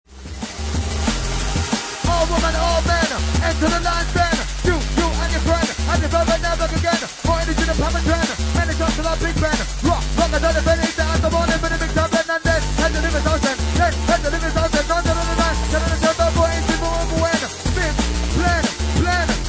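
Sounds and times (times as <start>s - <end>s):
drum and bass music: 0.0s - 19.4s.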